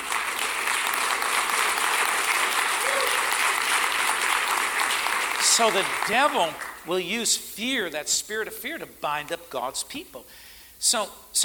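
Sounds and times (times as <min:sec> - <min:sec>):
hand clapping: 0:00.0 - 0:06.8
faint room hiss: 0:00.0 - 0:11.4
speech: 0:05.6 - 0:11.4.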